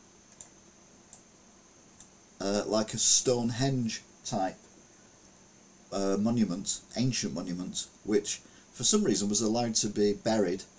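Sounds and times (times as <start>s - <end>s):
low steady hiss: 0.0s - 10.7s
computer mouse clicks on a picture: 0.3s - 1.3s
speech: 2.4s - 4.6s, 5.9s - 10.7s.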